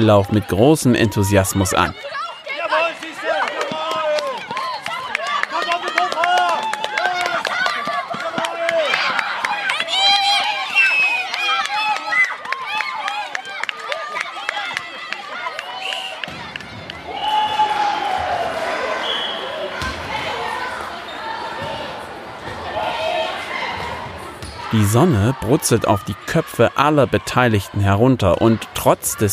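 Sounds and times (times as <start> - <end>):
speech: 0.0 - 2.2, 24.9 - 29.3
crowd murmuring and calling out: 0.0 - 29.3
teachers cheering at a relay race: 0.0 - 29.3
sneakers squeaking against a gym floor: 23.7 - 24.8
basketball bouncing in a gym: 23.8 - 24.7.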